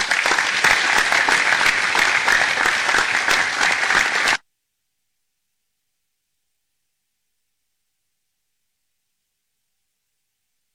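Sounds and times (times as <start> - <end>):
audience applause in council chamber: 0.0 - 4.4.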